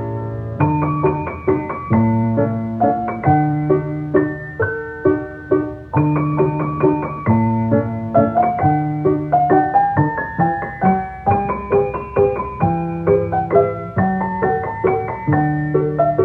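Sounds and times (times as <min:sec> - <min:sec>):
piano waltz: 0:00.0 - 0:16.2.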